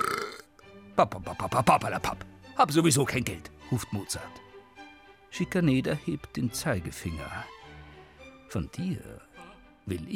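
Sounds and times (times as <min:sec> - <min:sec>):
man burping after a deep gulp of beer from a beer stein: 0:00.0 - 0:00.6
speech: 0:01.0 - 0:04.5, 0:05.3 - 0:07.6, 0:08.5 - 0:09.2, 0:09.9 - 0:10.1.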